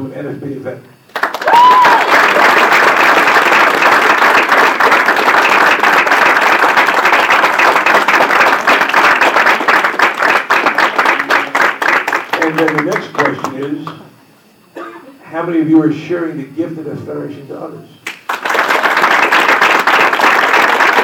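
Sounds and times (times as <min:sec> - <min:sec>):
speech: 0:00.2 - 0:02.4, 0:12.6 - 0:14.1, 0:15.3 - 0:18.0
crowd applauding: 0:01.1 - 0:13.9, 0:18.0 - 0:21.0
scattered cheers: 0:01.3 - 0:02.4.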